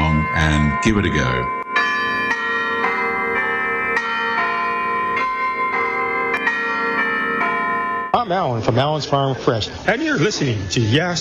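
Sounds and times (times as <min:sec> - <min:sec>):
church bells pealing: 0:00.0 - 0:08.9
speech: 0:00.8 - 0:01.6, 0:08.3 - 0:11.1.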